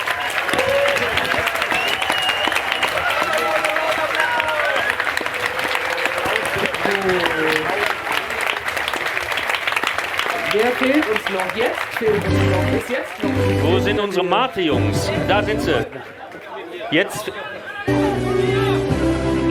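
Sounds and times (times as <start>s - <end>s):
audience applause at a stage event: 0.0s - 14.8s
audience voices calling out and cheering: 0.0s - 19.4s
speech: 11.3s - 16.2s, 16.9s - 18.1s.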